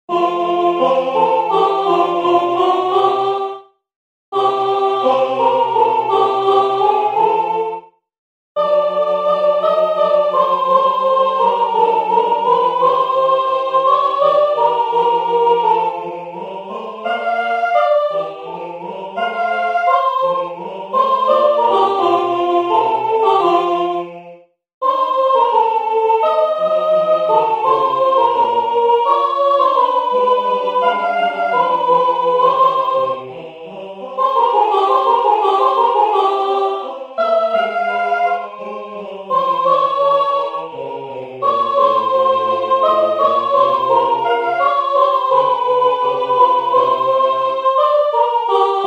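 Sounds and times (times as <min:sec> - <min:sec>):
soprano singing: 0:00.1 - 0:03.7, 0:04.4 - 0:07.9, 0:08.6 - 0:24.2, 0:24.8 - 0:48.8.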